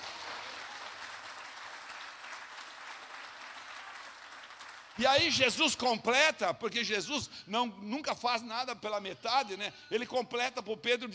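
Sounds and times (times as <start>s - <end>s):
audience applauding: 0.0s - 5.2s
speech: 5.0s - 11.1s.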